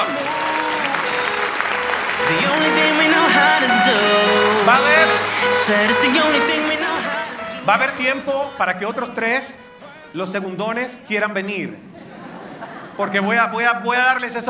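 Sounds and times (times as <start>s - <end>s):
audience applause: 0.0s - 7.5s
speech: 5.6s - 6.6s, 7.7s - 11.9s, 13.0s - 14.4s
laughter: 11.7s - 13.6s.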